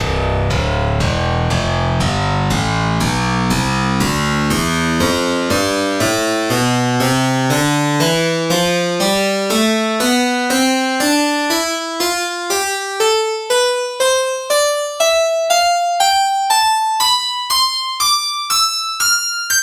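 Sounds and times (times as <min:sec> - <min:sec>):
harpsichord scale: 0:00.0 - 0:19.6.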